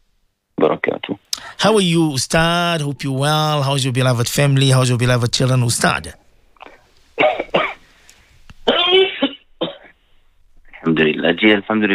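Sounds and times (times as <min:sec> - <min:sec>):
speech: 0:00.6 - 0:06.2, 0:10.9 - 0:11.9
person sneezing: 0:06.6 - 0:07.9, 0:08.6 - 0:10.0.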